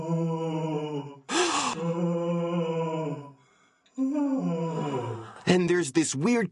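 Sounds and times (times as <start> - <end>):
eerie moaning: 0.0 - 3.4, 4.0 - 5.5
speech: 5.5 - 6.5.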